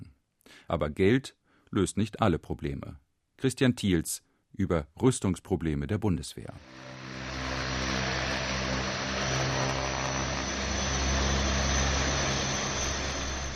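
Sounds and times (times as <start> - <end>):
speech: 0.7 - 6.9
Transall military transport aircraft propeller engines taking off: 6.6 - 13.5.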